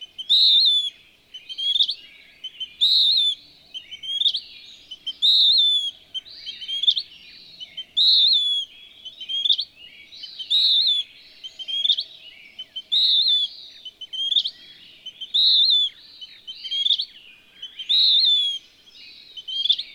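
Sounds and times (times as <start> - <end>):
western wood-pewee whistling: 0.1 - 7.1, 8.0 - 9.7, 10.4 - 12.0, 12.6 - 18.7.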